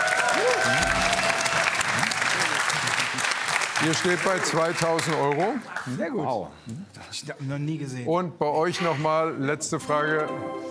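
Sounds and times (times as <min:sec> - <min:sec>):
audience applause: 0:00.0 - 0:05.9
speech: 0:03.8 - 0:10.6.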